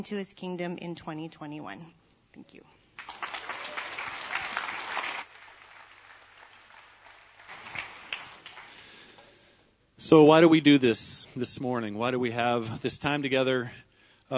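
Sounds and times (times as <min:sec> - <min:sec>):
speech: 0:00.0 - 0:02.8, 0:10.1 - 0:14.3
audience clapping and cheering: 0:03.0 - 0:09.2.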